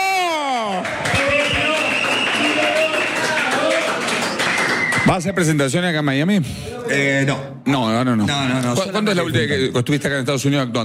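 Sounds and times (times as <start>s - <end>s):
audience applause: 0.5s - 5.3s
speech: 5.0s - 10.8s.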